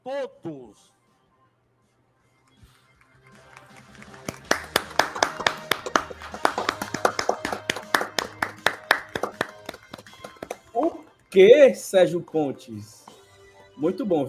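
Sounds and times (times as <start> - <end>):
round of applause at event: 3.4 - 10.7
speech: 11.4 - 13.0, 13.8 - 14.2.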